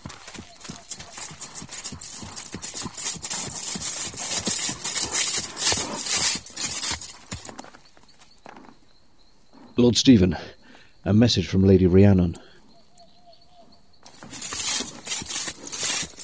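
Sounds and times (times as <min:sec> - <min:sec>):
horse hooves of approaching rider clip-clopping: 0:00.0 - 0:09.8, 0:14.0 - 0:16.2
speech: 0:09.8 - 0:12.4.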